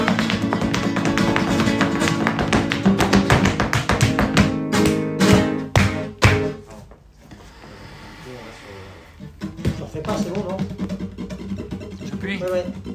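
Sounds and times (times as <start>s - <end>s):
flamenco tangos guitar falseta: 0.0s - 7.6s, 9.0s - 12.9s.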